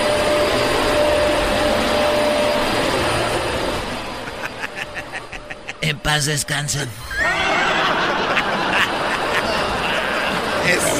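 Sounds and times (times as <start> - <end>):
vacuum cleaner running: 0.0 - 5.7, 7.0 - 10.9
laughter: 4.1 - 10.9
speech: 6.1 - 7.5, 10.7 - 10.9.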